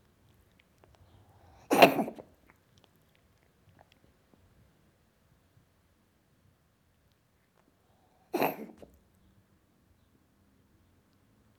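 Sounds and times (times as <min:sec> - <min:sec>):
cat coughing: 0:01.7 - 0:02.2, 0:08.4 - 0:08.9.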